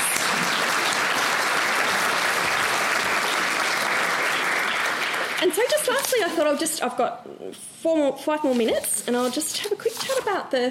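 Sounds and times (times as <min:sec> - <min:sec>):
audience applause: 0:00.0 - 0:06.3
speech: 0:05.4 - 0:10.6.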